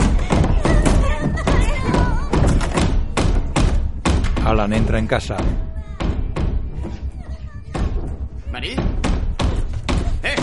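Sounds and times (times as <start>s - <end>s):
mother pounding on a door: 0.0s - 10.4s
speech: 4.6s - 5.7s, 8.6s - 8.9s.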